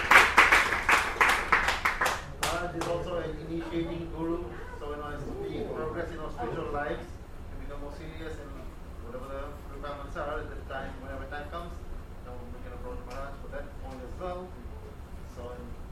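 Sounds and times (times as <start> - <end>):
audience applause for a guest: 0.0 - 3.1
people talking: 2.4 - 15.9.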